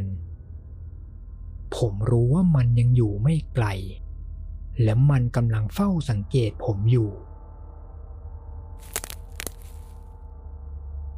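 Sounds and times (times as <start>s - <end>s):
speech: 1.8s - 4.0s, 4.8s - 7.3s
tree branch snapping: 8.8s - 10.0s.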